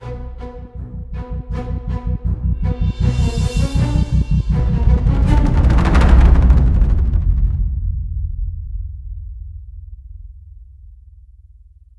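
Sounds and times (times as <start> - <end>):
determined action music at 80 BPM: 0.0 - 8.0.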